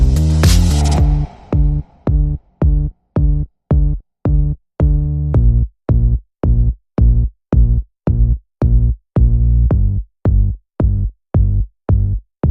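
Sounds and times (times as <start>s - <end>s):
drums: 0.0s - 7.7s
bass: 0.0s - 12.4s.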